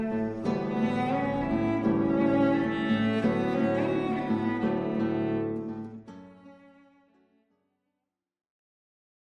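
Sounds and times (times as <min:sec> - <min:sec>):
caprice music: 0:00.0 - 0:07.1.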